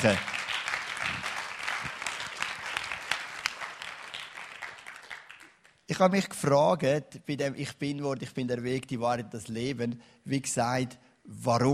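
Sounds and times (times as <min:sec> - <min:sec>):
speech: 0:00.0 - 0:00.3, 0:05.9 - 0:11.7
audience applause: 0:00.0 - 0:05.7.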